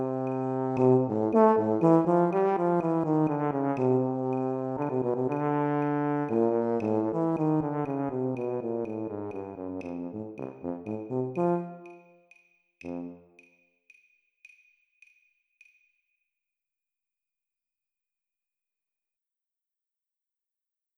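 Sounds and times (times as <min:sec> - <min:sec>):
tuba playing: 0:00.0 - 0:12.2, 0:12.8 - 0:13.4.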